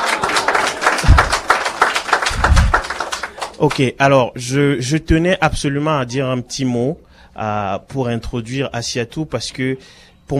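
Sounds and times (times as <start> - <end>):
audience applause: 0.0 - 3.8
dull low thumps: 1.0 - 1.5, 2.3 - 2.9
speech: 3.6 - 10.3.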